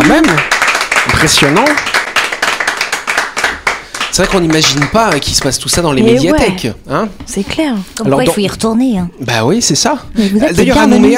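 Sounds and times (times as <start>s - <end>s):
people clapping: 0.0s - 6.2s
speech: 1.2s - 2.0s, 4.1s - 11.1s.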